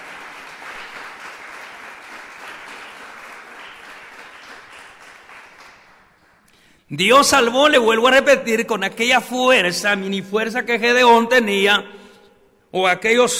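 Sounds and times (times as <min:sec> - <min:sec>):
audience applause: 0:00.0 - 0:06.6
speech: 0:06.9 - 0:12.0, 0:12.7 - 0:13.3.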